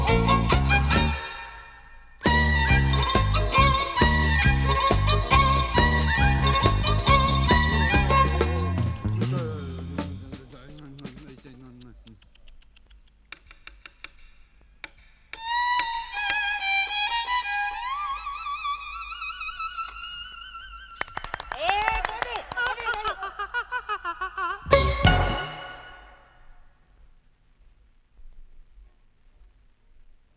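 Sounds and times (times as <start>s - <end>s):
violin cartoon music: 0.0s - 10.6s, 15.4s - 21.1s, 24.7s - 26.2s
laughter: 21.2s - 25.9s.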